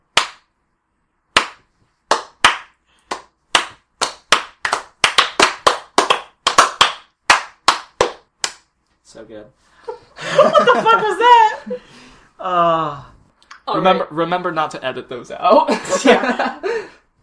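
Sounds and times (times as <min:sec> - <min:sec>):
sharp loud hand claps: 0:00.1 - 0:00.5, 0:01.3 - 0:08.7
speech: 0:09.2 - 0:13.1, 0:13.7 - 0:16.9
laughter: 0:09.9 - 0:11.8, 0:15.6 - 0:16.9.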